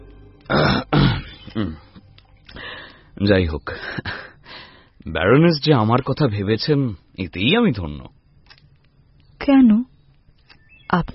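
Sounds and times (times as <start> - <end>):
gruff throat clearing: 0.5 - 1.9
speech: 1.6 - 1.8, 3.2 - 4.3, 5.0 - 8.2, 9.5 - 9.9, 10.9 - 11.1.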